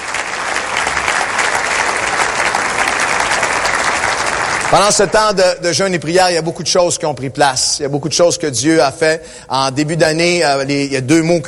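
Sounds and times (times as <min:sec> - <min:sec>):
audience clapping: 0:00.0 - 0:05.4
speech: 0:04.7 - 0:11.4.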